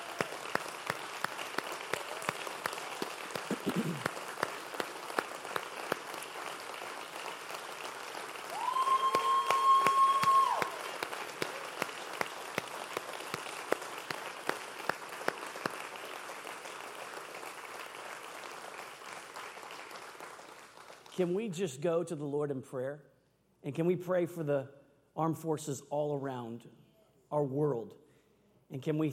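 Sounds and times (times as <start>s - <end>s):
audience applause: 0.0s - 21.1s
speech: 21.2s - 28.0s, 28.7s - 29.1s.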